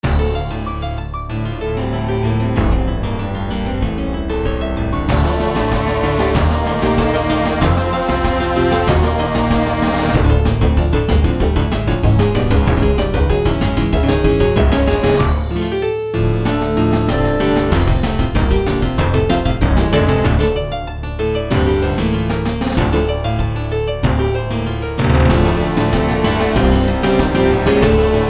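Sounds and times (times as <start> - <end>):
piano music: 0.0 - 28.2.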